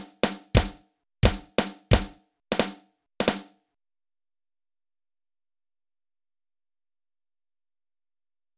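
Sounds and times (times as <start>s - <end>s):
drums: 0.0s - 3.6s.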